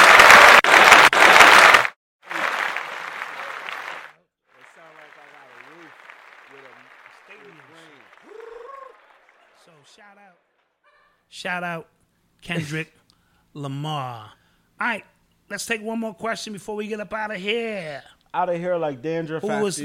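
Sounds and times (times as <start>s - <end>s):
audience applause: 0.0s - 10.8s
cheers: 0.0s - 11.1s
speech: 11.4s - 13.0s, 13.6s - 19.8s.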